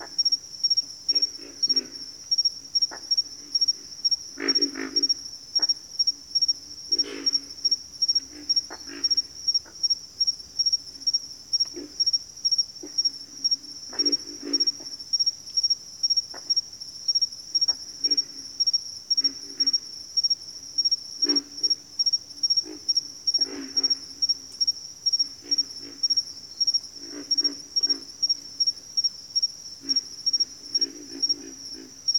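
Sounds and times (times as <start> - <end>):
insect chirping: 0.0 - 32.1
pig frog grunting: 1.1 - 2.2, 2.8 - 5.8, 6.8 - 9.9, 11.0 - 12.2, 12.8 - 15.0, 17.6 - 19.9, 22.4 - 24.4, 25.2 - 26.3, 26.9 - 28.4, 29.8 - 32.1.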